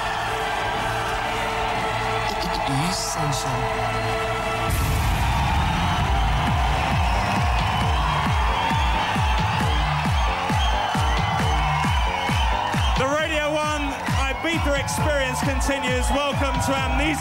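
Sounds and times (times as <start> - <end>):
nightclub crowd cheering and shouting: 0.0 - 17.1
pounding dance beat with kick drums: 0.0 - 17.1
speech: 2.7 - 4.9, 14.5 - 17.1.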